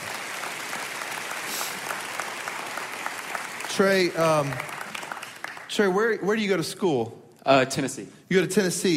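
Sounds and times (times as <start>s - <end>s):
audience applause: 0.0s - 6.0s
speech: 3.8s - 4.7s, 5.8s - 8.9s.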